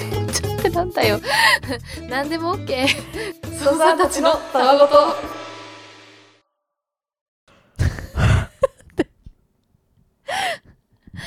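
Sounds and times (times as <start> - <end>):
speech: 0.7 - 5.4
person yawning: 7.8 - 8.8.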